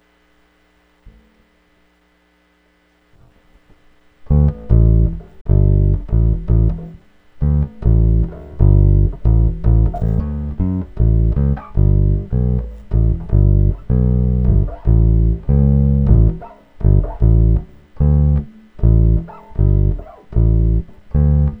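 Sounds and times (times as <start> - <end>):
bass: 3.2 - 21.5.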